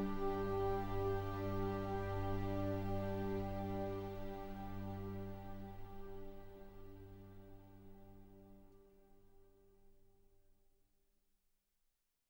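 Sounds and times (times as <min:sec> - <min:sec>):
instrumental music: 0:00.0 - 0:08.5.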